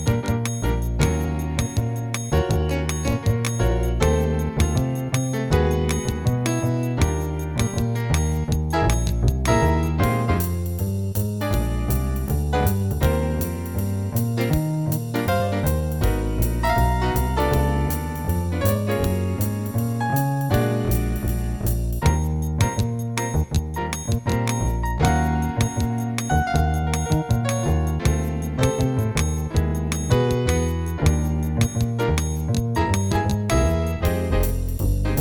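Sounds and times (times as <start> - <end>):
jazz piano play-along in E-flat: 0.0 - 35.1.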